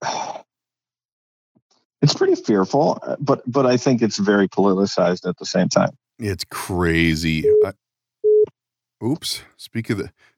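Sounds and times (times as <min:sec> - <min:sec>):
speech: 0:02.0 - 0:07.8, 0:09.0 - 0:10.3
phone call tone: 0:06.9 - 0:07.7.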